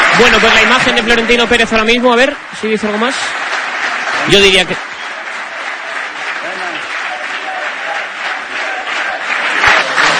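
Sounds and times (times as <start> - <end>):
crowd applauding: 0.0 - 10.1
speech: 0.2 - 3.6, 4.2 - 4.9
crowd chanting presidente: 5.0 - 10.1.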